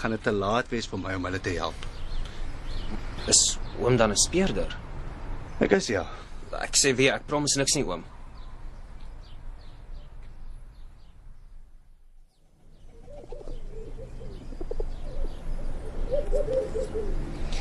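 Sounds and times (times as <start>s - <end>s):
speech: 0.0s - 1.9s, 2.9s - 4.9s, 5.6s - 8.1s
turtle dove cooing at its nest: 12.8s - 17.5s.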